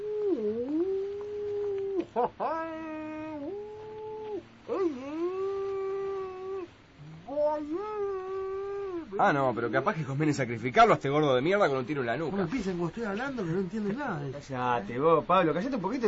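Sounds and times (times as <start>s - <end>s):
person imitating whale calls: 0.0s - 9.2s
speech: 2.2s - 2.8s, 9.2s - 16.0s.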